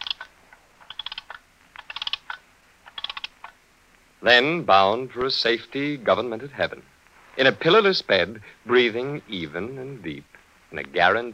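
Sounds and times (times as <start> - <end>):
alarm clock being wound: 0.0 - 3.4
speech: 4.2 - 11.3.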